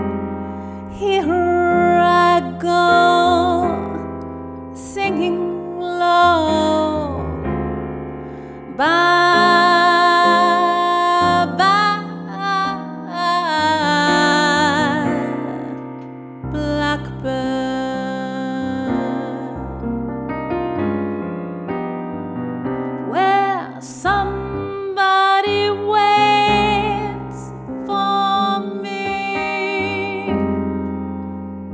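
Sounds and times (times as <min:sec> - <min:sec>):
piano: 0:00.0 - 0:31.7
person singing: 0:00.9 - 0:04.0, 0:04.8 - 0:07.4, 0:08.7 - 0:15.9, 0:16.5 - 0:19.8, 0:23.1 - 0:30.5.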